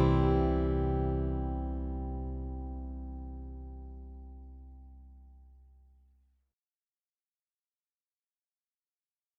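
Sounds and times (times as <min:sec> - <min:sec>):
mandolin bluegrass tune: 0:00.0 - 0:03.4.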